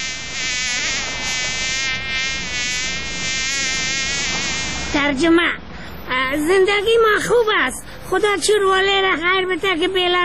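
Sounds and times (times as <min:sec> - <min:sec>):
fly buzzing: 0:00.0 - 0:05.0
speech: 0:05.1 - 0:05.6, 0:06.3 - 0:10.2.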